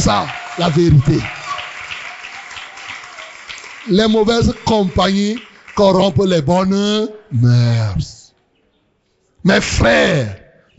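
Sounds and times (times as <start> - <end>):
speech: 0.0 - 1.4, 3.9 - 8.2, 9.4 - 10.7
congregation applause in praise during a French-language sermon: 0.0 - 7.0.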